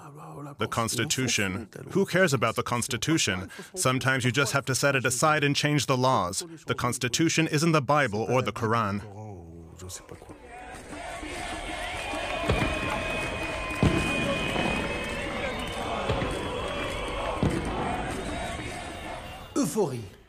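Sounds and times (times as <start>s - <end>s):
speech: 0.3s - 10.4s, 19.6s - 20.2s
street crowd cheering: 10.4s - 20.2s
horns honking: 10.6s - 20.2s
applause: 10.9s - 19.4s.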